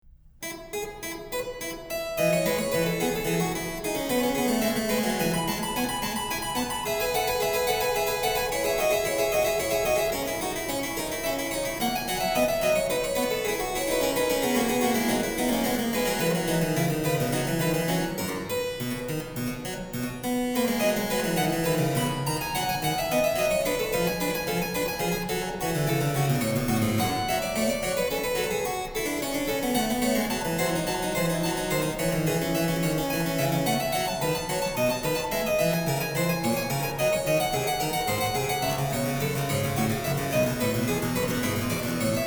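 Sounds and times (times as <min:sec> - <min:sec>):
harpsichord invention: 0:00.4 - 0:42.2.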